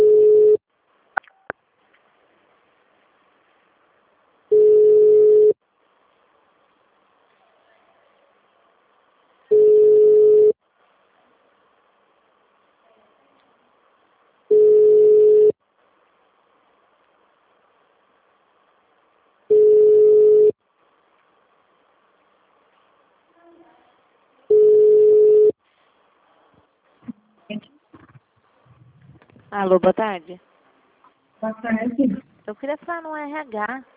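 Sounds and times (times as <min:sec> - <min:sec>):
telephone line tone while a call is being transferred: 0:00.0 - 0:00.6, 0:04.5 - 0:05.6, 0:09.5 - 0:10.6, 0:14.5 - 0:15.6, 0:19.5 - 0:20.6, 0:24.5 - 0:25.6
speech: 0:29.6 - 0:30.5, 0:31.4 - 0:33.9.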